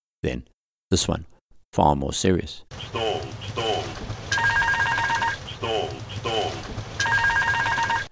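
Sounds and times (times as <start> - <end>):
speech: 0.2 - 3.0
cockpit stall warning synthetic male voice: 2.8 - 6.7
cockpit stall warning cricket tone: 4.4 - 5.4, 7.0 - 8.1.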